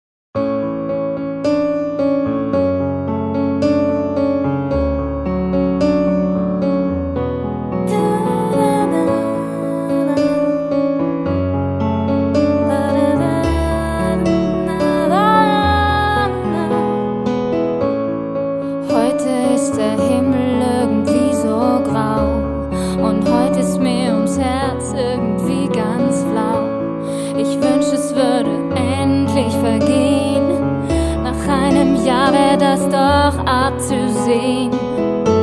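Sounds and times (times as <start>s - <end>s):
piano piece: 0.4s - 35.4s.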